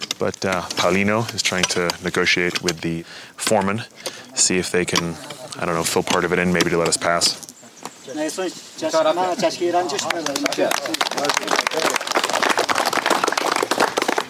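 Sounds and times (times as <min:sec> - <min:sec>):
speech: 0:00.2 - 0:12.1
people clapping: 0:09.6 - 0:14.2.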